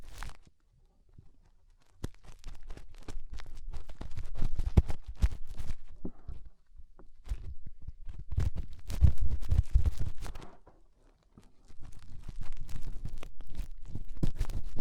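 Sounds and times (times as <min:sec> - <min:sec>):
fingers rubbing and scraping in an ear: 0:01.9 - 0:06.5, 0:07.2 - 0:10.6, 0:11.4 - 0:14.7.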